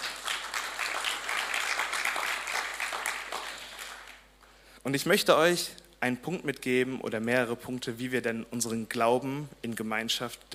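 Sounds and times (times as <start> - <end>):
audience applause: 0.0 - 4.3
speech: 4.8 - 10.5.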